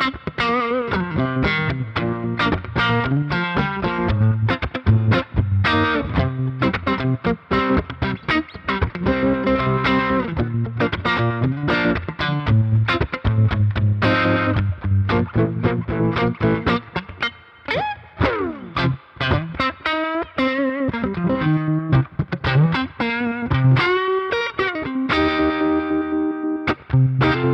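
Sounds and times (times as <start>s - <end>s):
fuzz guitar: 0.0s - 27.5s.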